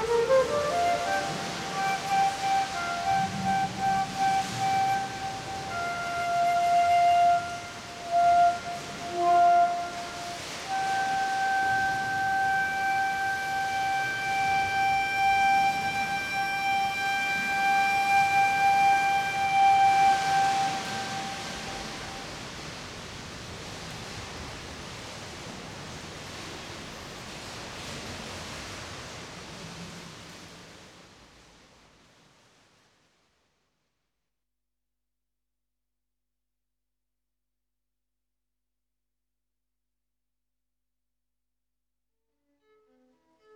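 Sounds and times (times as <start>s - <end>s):
flute playing in a cave: 0.0s - 22.8s.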